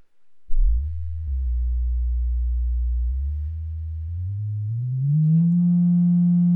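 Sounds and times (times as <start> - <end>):
sung tone resonating the room's harmonic frequency: 0.5 - 6.5.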